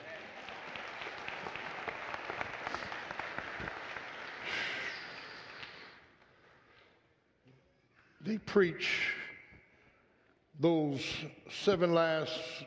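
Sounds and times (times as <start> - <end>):
audience applause: 0.0 - 6.0
speech: 8.3 - 9.2, 10.6 - 12.6.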